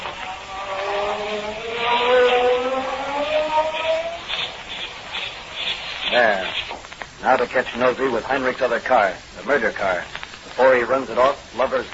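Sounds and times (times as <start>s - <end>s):
magic ray sound effect burning off handcuffs: 0.0s - 6.8s
speech: 7.3s - 11.9s.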